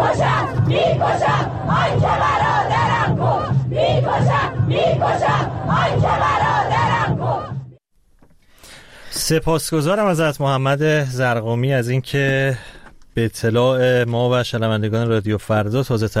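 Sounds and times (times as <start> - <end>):
funeral crowd chanting slogans against security forces: 0.0 - 7.8
speech: 9.3 - 16.1.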